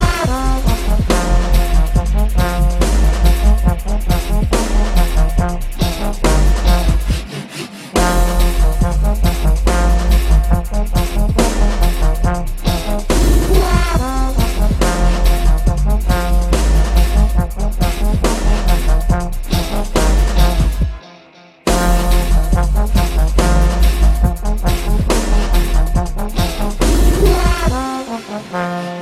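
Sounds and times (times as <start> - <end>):
ninjastep dubstep music: 0.0 - 21.1, 21.7 - 29.0.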